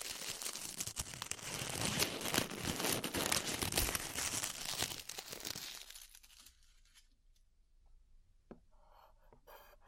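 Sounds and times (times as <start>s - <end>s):
glue being peeled off the ears, crackling and tearing: 0.0s - 7.0s.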